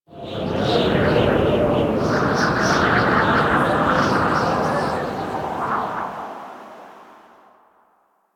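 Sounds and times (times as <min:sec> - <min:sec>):
exterior wind gust: 0:00.1 - 0:08.0.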